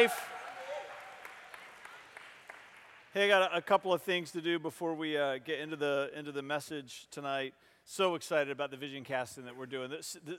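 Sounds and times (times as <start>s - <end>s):
speech: 0.0s - 0.3s, 3.1s - 10.3s
audience cheering and applause: 0.0s - 3.0s.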